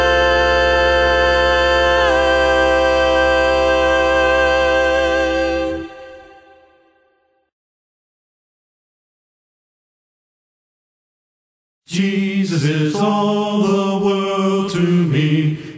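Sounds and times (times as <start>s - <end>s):
a cappella singing: 0.0s - 7.0s, 11.9s - 15.7s.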